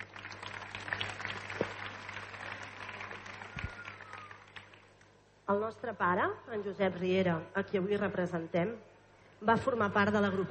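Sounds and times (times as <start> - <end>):
loud applause from a crowd: 0.0 - 4.9
speech: 5.5 - 10.5.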